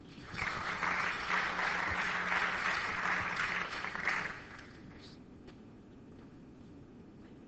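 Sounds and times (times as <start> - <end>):
crowd applause: 0.1 - 5.0.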